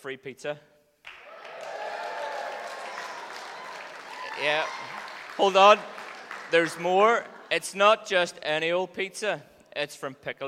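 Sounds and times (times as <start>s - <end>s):
speech: 0.0s - 0.8s, 4.4s - 10.4s
audience cheering and applauding: 1.1s - 7.8s.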